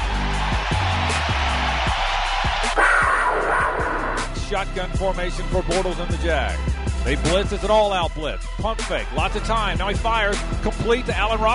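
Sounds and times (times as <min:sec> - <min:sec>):
stadium crowd giving standing ovation: 0:00.0 - 0:06.2
speech: 0:04.5 - 0:11.5.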